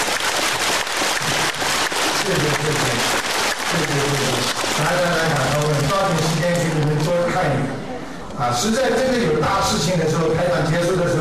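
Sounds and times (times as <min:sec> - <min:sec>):
audience applause: 0:00.0 - 0:07.1
speech: 0:08.4 - 0:11.2.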